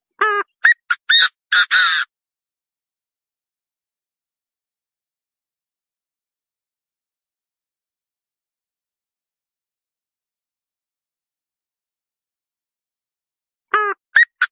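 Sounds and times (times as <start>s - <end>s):
partridge calling: 0.2s - 2.0s.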